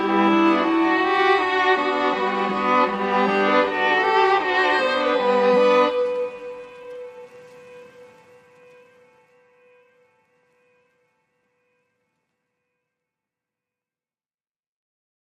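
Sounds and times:
strings: 0.0s - 11.8s.

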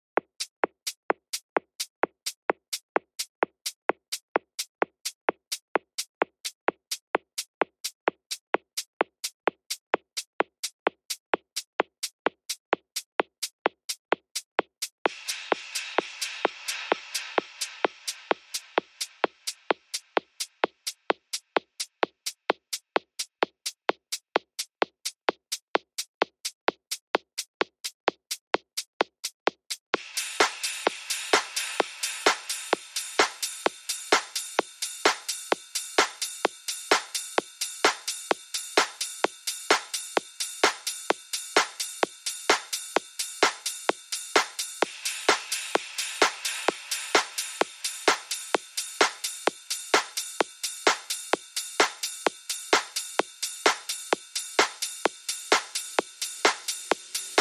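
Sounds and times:
drums: 0.0s - 57.3s
bass: 29.9s - 57.3s.

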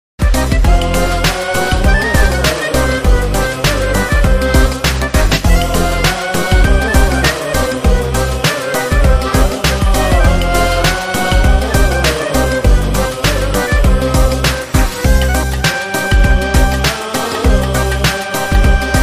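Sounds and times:
modern remix music: 0.2s - 19.0s.

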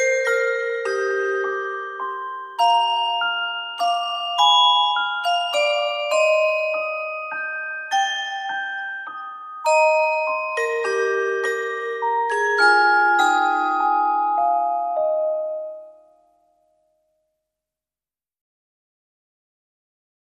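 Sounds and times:
carillon playing a Christmas carol: 0.0s - 16.2s.

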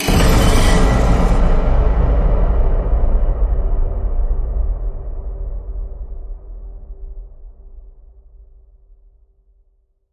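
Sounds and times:
horror hit: 0.0s - 6.9s.

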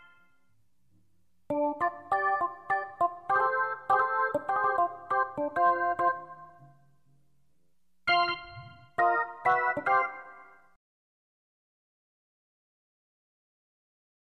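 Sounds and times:
solo organ: 1.5s - 7.0s, 8.0s - 10.8s.

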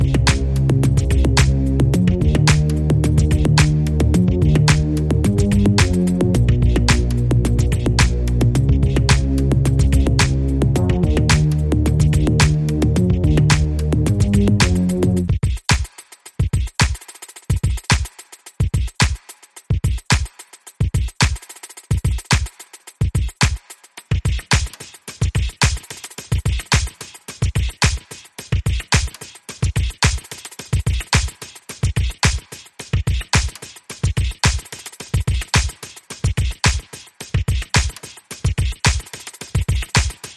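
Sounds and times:
bass: 0.0s - 15.4s
drums: 0.0s - 40.3s.

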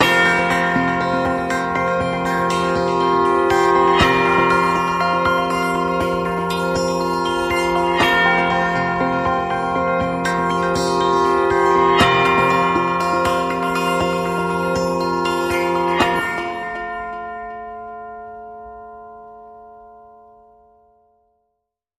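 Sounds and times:
christmas bells: 0.0s - 21.4s.

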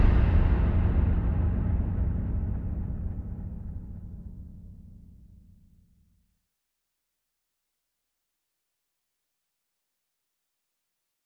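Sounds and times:
percussion pads and pulses: 0.0s - 5.5s.

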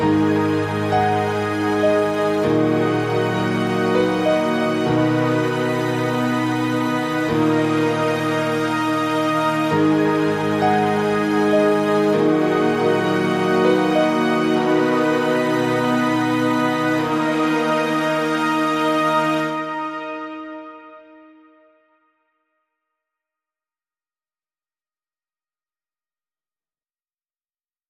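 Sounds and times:
strings and piano mix: 0.0s - 21.5s.

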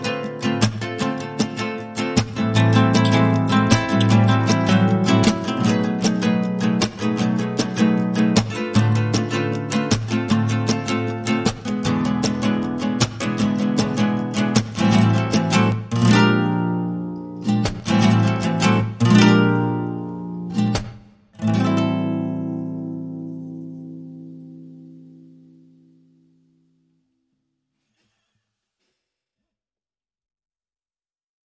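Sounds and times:
rhythm guitars: 0.0s - 22.4s.

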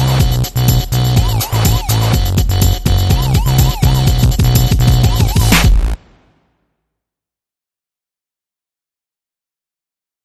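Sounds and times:
groove music: 0.0s - 6.2s.

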